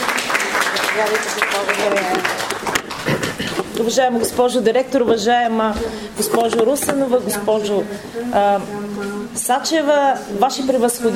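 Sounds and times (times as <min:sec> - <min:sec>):
audience applause for the chair of Bulgaria's National Assembly: 0:00.0 - 0:03.7
speech: 0:01.0 - 0:03.2, 0:03.8 - 0:11.1.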